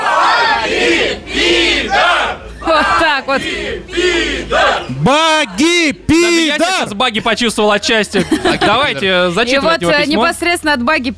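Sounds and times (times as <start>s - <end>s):
audience shouting in unison: 0.0s - 6.9s
laughter: 2.4s - 3.8s, 7.0s - 9.6s
speech: 3.4s - 11.1s.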